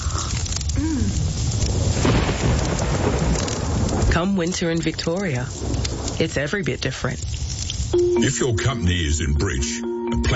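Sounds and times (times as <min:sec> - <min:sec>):
heavy rain pouring: 0:00.0 - 0:09.4
low thunder rumbling: 0:00.8 - 0:06.8
speech: 0:04.2 - 0:10.3.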